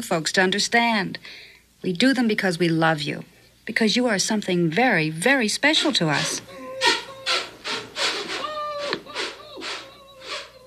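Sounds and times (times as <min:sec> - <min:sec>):
speech: 0:00.0 - 0:06.6
dog whining: 0:06.4 - 0:10.6
dog scratching at a wooden door: 0:06.8 - 0:08.6.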